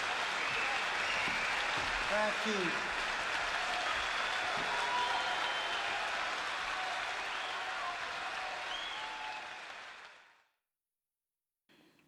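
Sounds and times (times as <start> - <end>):
crowd applause after a live song: 0.0 - 10.4
speech: 2.1 - 3.0.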